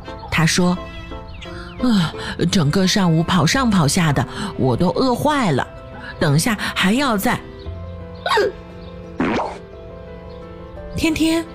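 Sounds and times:
speech: 0.4 - 0.9, 1.8 - 7.5, 8.3 - 8.6, 11.0 - 11.5
hiccups: 8.3 - 8.6, 9.2 - 9.6.

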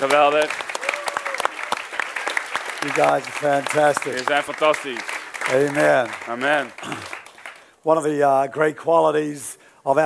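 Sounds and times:
speech: 0.0 - 0.7, 2.8 - 7.2, 7.8 - 10.0
audience clapping: 0.0 - 7.8.

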